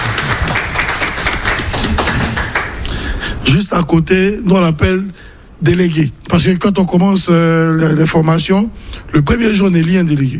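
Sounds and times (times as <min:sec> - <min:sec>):
audience applause: 0:00.0 - 0:02.8
speech: 0:03.5 - 0:10.3.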